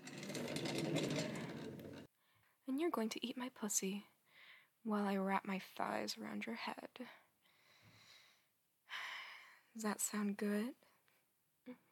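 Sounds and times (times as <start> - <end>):
desk chair wheels rolling: 0.0 - 2.1
speech: 2.8 - 4.1, 4.8 - 7.2, 9.8 - 10.9.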